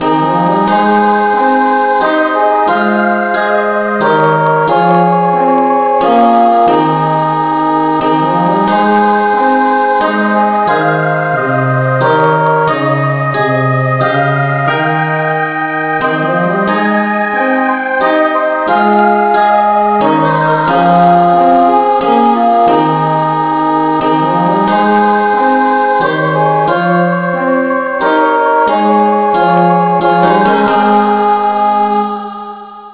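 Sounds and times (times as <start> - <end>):
instrumental music in the key of A: 0.0 - 32.9.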